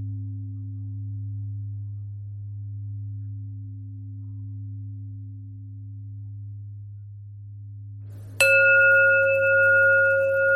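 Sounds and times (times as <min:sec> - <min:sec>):
bells ringing: 0:08.4 - 0:10.5.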